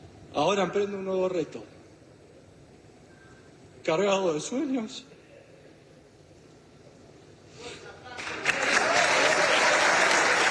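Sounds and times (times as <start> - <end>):
speech: 0.4 - 1.8, 3.9 - 5.1
large crowd applause: 8.1 - 10.4.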